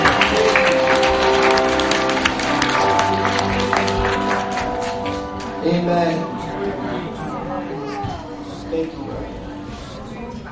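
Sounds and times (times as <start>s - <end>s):
large group clapping: 0.0s - 5.7s
sustained musical tones: 0.0s - 9.6s.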